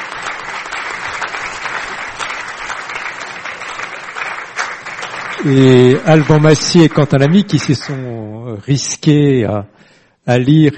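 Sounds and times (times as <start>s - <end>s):
audience applause: 0.0s - 8.2s
speech: 5.4s - 10.7s.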